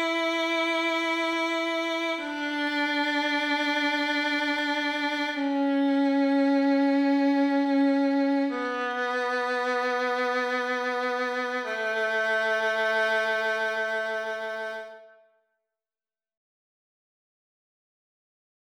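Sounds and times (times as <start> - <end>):
violin playing the A major scale: 0.0 - 15.2.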